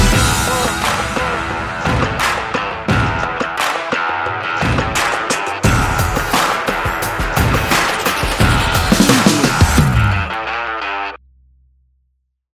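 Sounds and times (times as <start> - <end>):
action advertising background music: 0.0 - 10.8.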